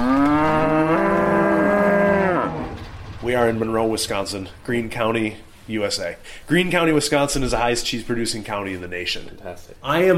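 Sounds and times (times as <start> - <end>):
Brown Swiss cow mooing: 0.0 - 2.8
speech: 3.3 - 10.1.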